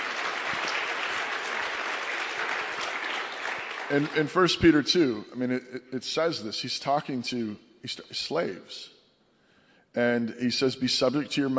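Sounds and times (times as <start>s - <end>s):
crowd applauding: 0.0s - 4.7s
speech: 3.9s - 9.0s, 9.9s - 11.5s.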